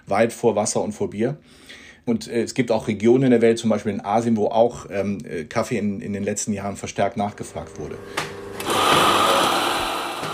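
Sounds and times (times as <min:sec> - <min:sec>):
speech: 0:00.1 - 0:09.1
portafilter espresso machine pump buzzing while making espresso: 0:07.2 - 0:10.3.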